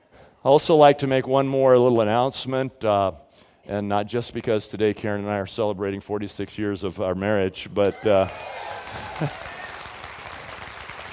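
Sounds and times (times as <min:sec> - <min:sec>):
speech: 0:00.4 - 0:09.5
audience applause: 0:07.9 - 0:11.1.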